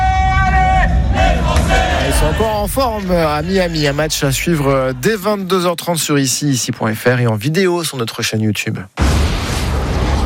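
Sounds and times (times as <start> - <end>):
French football supporters chanting and cheering: 0.0 - 4.4
speech: 2.4 - 9.1.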